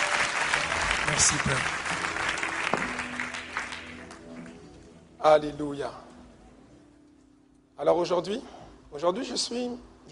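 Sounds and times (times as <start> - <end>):
church congregation applauding to acclaim the Lord during a service: 0.0 - 4.9
speech: 1.1 - 1.9, 5.2 - 6.0, 7.8 - 10.0.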